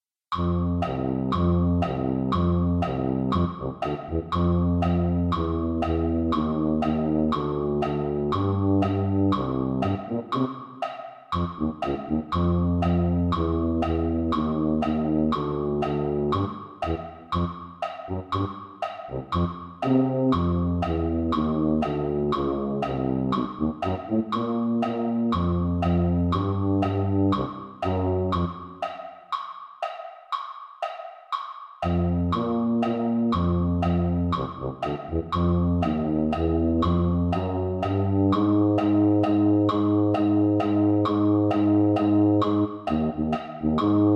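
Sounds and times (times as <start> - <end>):
tuba: 0.3 - 28.8, 31.8 - 44.1.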